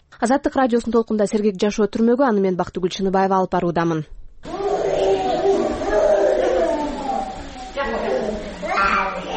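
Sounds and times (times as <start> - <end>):
speech: 0.2 - 4.2
sick child with a fever crying in an infectious diseases hospital: 4.5 - 9.3.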